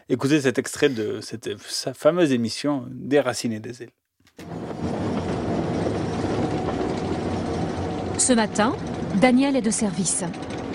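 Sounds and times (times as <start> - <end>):
speech: 0.1 - 4.6, 8.2 - 10.7
passenger train running across the high plateaus of the Causses: 4.4 - 10.7.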